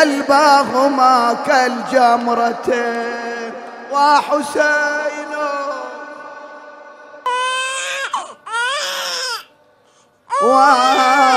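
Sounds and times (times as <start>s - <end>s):
speech: 0.0s - 5.6s, 10.4s - 11.3s
infant crying in high-pitched wailing bursts: 7.2s - 9.5s, 10.3s - 11.3s.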